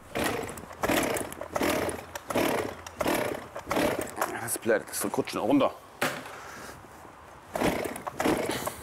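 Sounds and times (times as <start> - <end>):
chainsaw engine sputtering through starting attempts: 0.0 - 4.5, 7.5 - 8.8
speech: 4.6 - 5.9.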